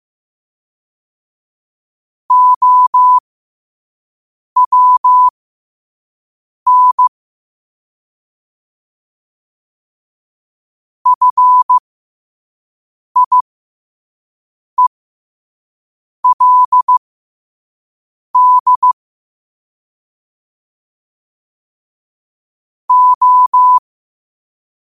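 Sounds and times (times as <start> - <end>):
morse code at 5 wpm: 2.3 - 3.2, 4.6 - 5.3, 6.7 - 7.1, 11.1 - 11.8, 13.2 - 13.4, 16.2 - 17.0, 18.4 - 19.0, 22.9 - 23.8.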